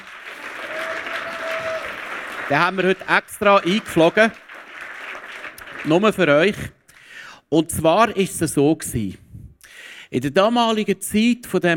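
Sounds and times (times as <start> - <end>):
audience applause: 0.0 - 6.4
speech: 2.5 - 4.4, 5.8 - 6.8, 7.5 - 9.2, 10.1 - 11.7.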